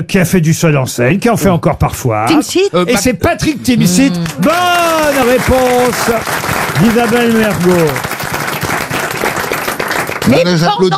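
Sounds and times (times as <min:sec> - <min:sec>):
speech: 0:00.0 - 0:08.1, 0:10.3 - 0:10.9
one person applauding: 0:03.9 - 0:10.6.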